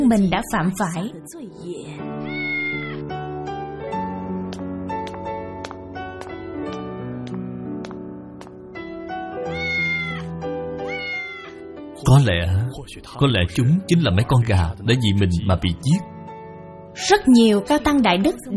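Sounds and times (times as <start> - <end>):
speech: 0.1 - 2.4, 12.1 - 16.1, 17.0 - 18.5
cat meowing: 2.2 - 3.0, 9.4 - 11.6.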